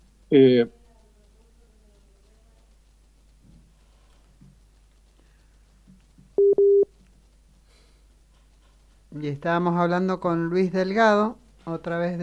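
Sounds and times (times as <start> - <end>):
speech: 0.3 - 0.8, 9.2 - 12.2
busy signal after a dropped international phone call: 6.4 - 6.9.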